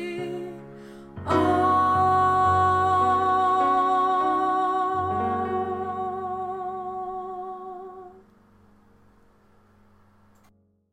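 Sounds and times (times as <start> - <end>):
soprano singing: 0.0 - 8.3.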